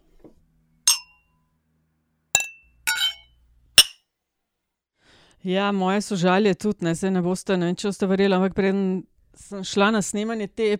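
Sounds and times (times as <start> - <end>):
glasses clinking in a toast: 0.9 - 1.2, 2.4 - 3.2
speech: 5.4 - 10.7.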